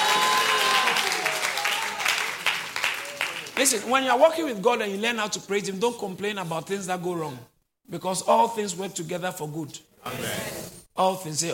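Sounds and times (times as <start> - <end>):
audience clapping: 0.0 - 3.9
speech: 3.6 - 11.5.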